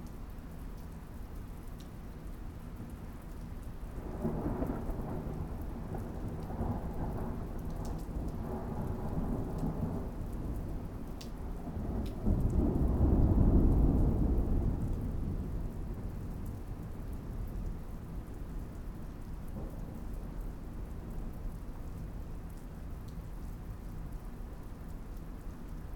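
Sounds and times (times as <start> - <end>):
thunderstorm: 4.0 - 22.3.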